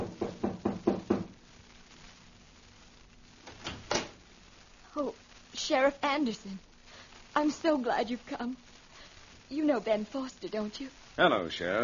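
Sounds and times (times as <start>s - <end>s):
knocking on a wooden front door: 0.0s - 1.3s
speech: 5.0s - 6.7s, 7.4s - 8.7s, 9.5s - 11.8s.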